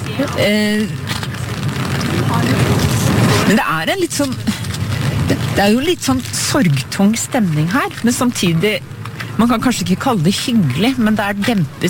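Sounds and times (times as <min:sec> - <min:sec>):
people murmuring: 0:00.0 - 0:11.8
rain crackling on umbrellas: 0:00.0 - 0:11.8
speech: 0:00.2 - 0:01.0, 0:03.5 - 0:04.6, 0:05.6 - 0:11.8.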